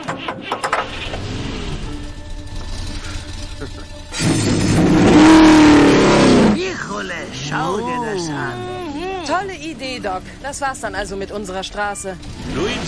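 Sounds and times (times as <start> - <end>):
several race car engines starting and revving at the start of a race: 0.6 - 12.8
speech: 10.1 - 12.8.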